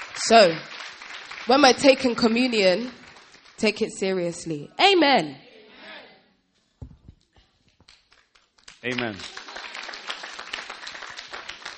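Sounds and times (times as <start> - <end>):
audience clapping: 0.0 - 4.0, 7.7 - 11.7
speech: 0.2 - 0.7, 1.5 - 3.0, 3.6 - 5.4, 8.8 - 9.4.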